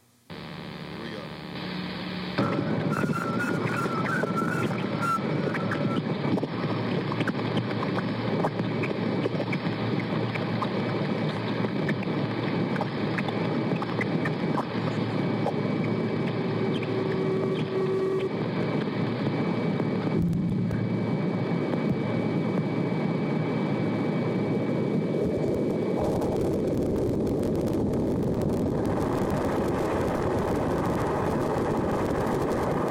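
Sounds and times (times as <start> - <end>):
low steady hum of sonified spacecraft data: 0.0 - 32.8
faint whistling tones: 2.4 - 6.1
wind-like roar of spacecraft crossing Jupiter's bow shock, sonified: 2.4 - 32.8.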